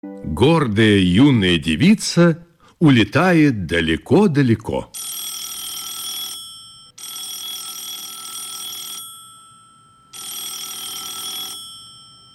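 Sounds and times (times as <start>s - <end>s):
speech: 0.0s - 5.0s
telephone ringing: 4.9s - 12.3s.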